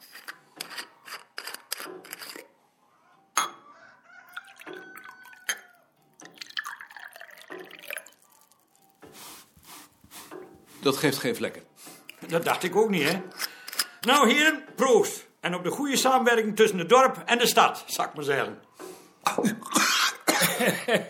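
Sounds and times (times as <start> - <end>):
glasses clinking: 3.4 - 3.6, 4.4 - 8.2
jenever being poured into small glasses: 4.3 - 10.6
speech: 10.8 - 11.7, 12.3 - 13.4, 14.0 - 18.7, 19.4 - 19.8, 20.6 - 21.0.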